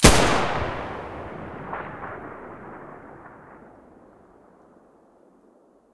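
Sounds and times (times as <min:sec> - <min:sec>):
G36 rifle muzzle gunshots: 0:00.0 - 0:04.1.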